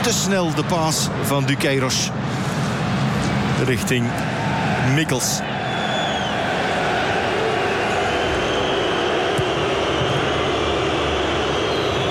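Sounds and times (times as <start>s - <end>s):
speech: 0.0s - 2.4s, 3.6s - 5.5s
football supporters chanting in stadium: 4.1s - 12.1s
home crowd whistling in stadium: 4.2s - 12.1s.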